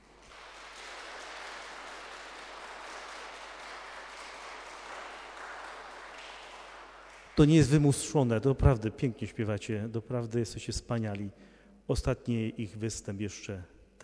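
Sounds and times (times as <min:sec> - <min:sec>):
crowd applause: 0:00.0 - 0:07.5
speech: 0:07.4 - 0:13.7.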